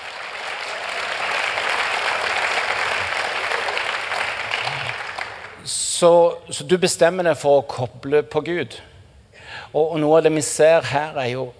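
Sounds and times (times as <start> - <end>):
crowd clapping: 0.0 - 5.6
speech: 6.0 - 8.9, 9.7 - 11.5.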